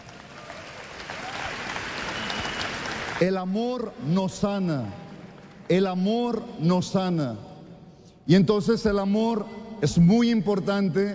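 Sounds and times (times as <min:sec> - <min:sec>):
audience applause: 0:00.0 - 0:03.4
speech: 0:03.2 - 0:05.0, 0:05.7 - 0:07.5, 0:08.3 - 0:11.1.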